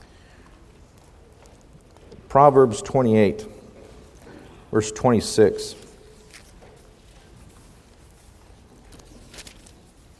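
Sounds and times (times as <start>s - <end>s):
low murmur: 0.0s - 10.1s
speech: 2.3s - 3.6s, 4.7s - 5.8s
pages turning: 5.8s - 10.1s.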